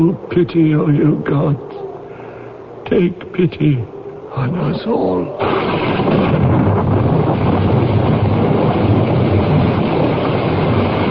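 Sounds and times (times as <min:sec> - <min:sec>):
speech: 0:00.0 - 0:01.8, 0:02.9 - 0:05.5
heavy rain: 0:05.4 - 0:11.1.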